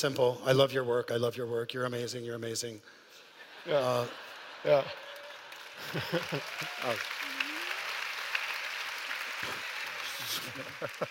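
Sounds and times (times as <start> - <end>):
speech: 0.0 - 3.0, 3.6 - 5.0, 5.8 - 7.2, 10.5 - 11.0
laughter: 3.3 - 7.7, 9.4 - 11.0
audience applause: 3.9 - 11.0.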